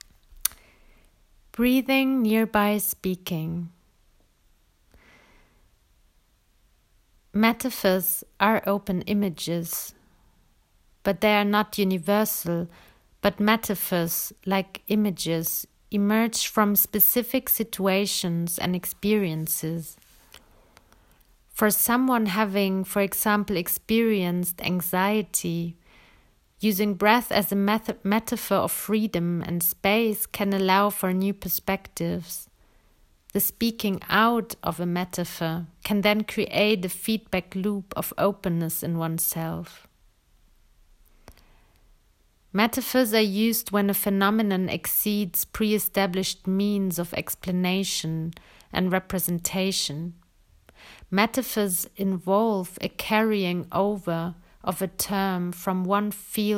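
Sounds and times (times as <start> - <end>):
person breathing: 0.6 - 1.2, 4.9 - 5.8, 12.7 - 13.2, 25.8 - 26.4, 41.2 - 41.8, 48.4 - 48.7, 50.7 - 51.1
person speaking: 1.5 - 3.8, 7.4 - 9.9, 11.0 - 20.4, 21.5 - 25.8, 26.6 - 32.5, 33.3 - 39.8, 42.5 - 50.2, 51.1 - 56.5.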